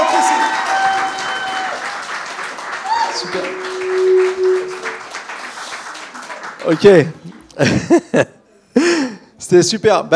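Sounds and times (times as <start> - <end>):
audience applause: 0.0 - 7.4
faint whistle-like tones: 3.1 - 5.1
speech: 6.6 - 10.1
laughter: 7.4 - 8.5.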